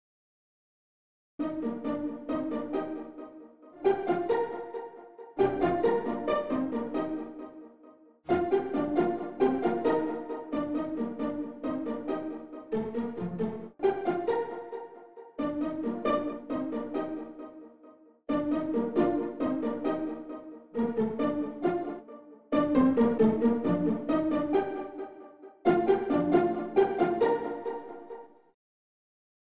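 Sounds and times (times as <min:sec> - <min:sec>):
solo pizzicato cellos: 0:01.4 - 0:07.6, 0:08.3 - 0:17.6, 0:18.3 - 0:28.3.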